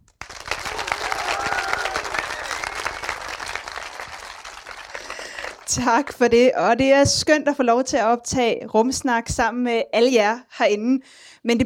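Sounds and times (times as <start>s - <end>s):
live audience applause: 0.1s - 6.1s
scattered cheers and whoops: 0.3s - 5.7s
speech: 5.7s - 11.6s.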